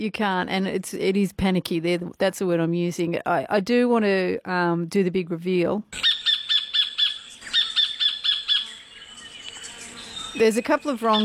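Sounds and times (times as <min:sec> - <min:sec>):
speech: 0:00.0 - 0:06.1, 0:10.4 - 0:11.2
sacred kingfisher calling: 0:06.0 - 0:11.2.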